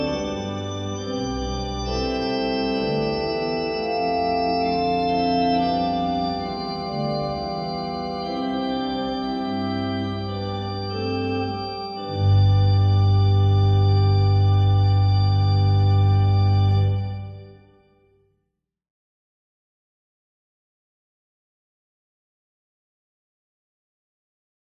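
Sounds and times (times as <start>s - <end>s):
chorale prelude: 0.0s - 17.8s.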